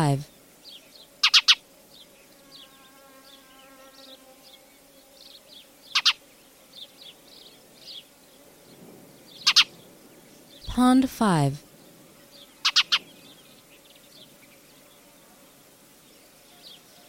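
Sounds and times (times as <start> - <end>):
speech: 0.0 - 0.3, 10.8 - 11.7
Spanish sparrow chirping: 0.0 - 2.9, 4.0 - 6.2, 6.8 - 8.1, 8.7 - 10.7, 11.8 - 15.0.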